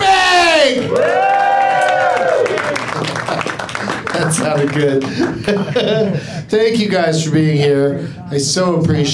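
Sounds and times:
studio audience cheering cut into a live show at Flappers in Burbank: 0.1 - 5.0
laughter: 2.8 - 6.4
speech: 4.7 - 9.1.

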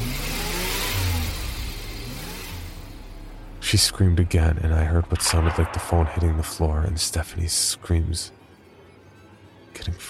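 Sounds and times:
car engine revving with accelerator floored: 0.0 - 6.4
speech: 3.7 - 8.4, 9.8 - 10.0.

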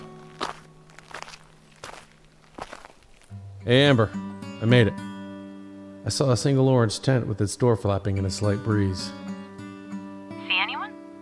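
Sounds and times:
footsteps crunching along a trail: 0.0 - 3.4
speech: 3.6 - 5.1, 6.0 - 9.3.

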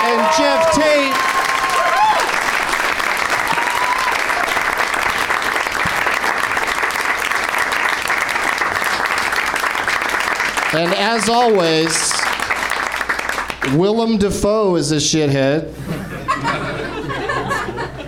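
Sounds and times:
audience applause: 0.0 - 13.8
speech: 10.8 - 12.2, 13.6 - 16.0
laughter: 15.8 - 18.0.

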